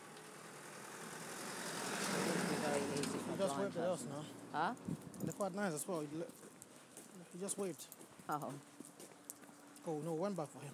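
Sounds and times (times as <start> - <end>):
car approaching on a narrow lane: 0.0 - 7.0
speech: 2.9 - 6.4, 7.2 - 8.8, 9.8 - 10.7.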